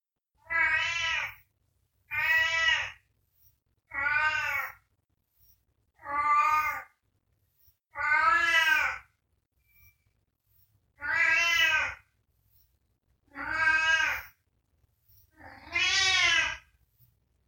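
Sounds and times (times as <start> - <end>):
domestic cat meowing: 0.4 - 1.4, 2.1 - 3.0, 3.9 - 4.8, 6.0 - 7.0, 7.9 - 9.1, 11.0 - 12.1, 13.3 - 14.4, 15.3 - 16.7.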